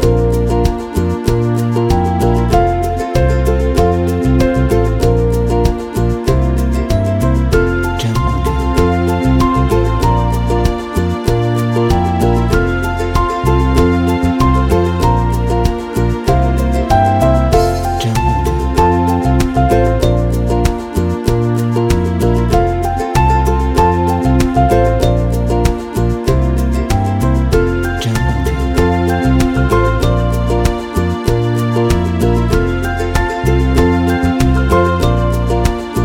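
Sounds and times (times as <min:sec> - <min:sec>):
happy romantic acoustic music: 0:00.0 - 0:36.0.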